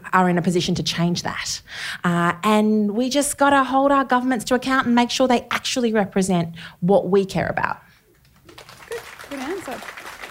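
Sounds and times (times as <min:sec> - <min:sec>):
speech: 0:00.1 - 0:07.8
audience clapping: 0:08.2 - 0:10.3.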